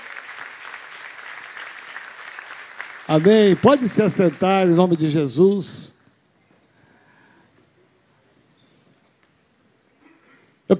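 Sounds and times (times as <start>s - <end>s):
audience applauding: 0.0s - 5.4s
speech: 3.1s - 6.0s.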